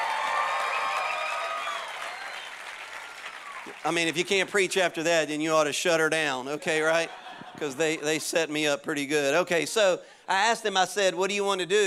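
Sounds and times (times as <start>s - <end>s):
audience clapping for the worship team: 0.0s - 4.9s
speech: 3.6s - 11.8s
laughter: 6.6s - 8.6s.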